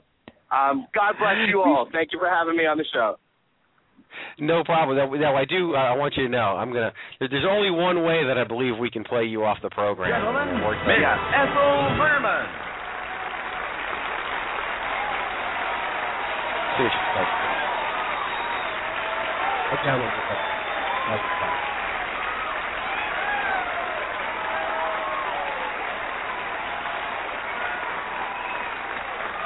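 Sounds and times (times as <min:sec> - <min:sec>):
speech: 0:00.5 - 0:03.2, 0:04.0 - 0:12.6, 0:19.8 - 0:20.5, 0:21.1 - 0:21.5
audience applause: 0:10.0 - 0:29.4.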